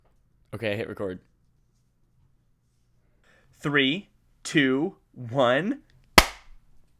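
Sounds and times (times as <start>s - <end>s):
speech: 0.5s - 1.3s, 3.6s - 5.9s
single hand clap: 6.2s - 6.5s.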